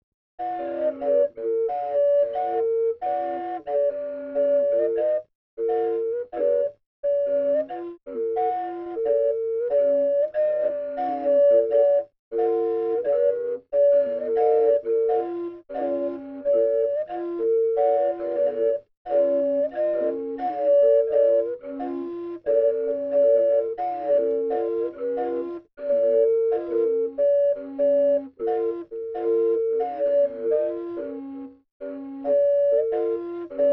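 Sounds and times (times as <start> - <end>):
flute: 0.4 - 33.7.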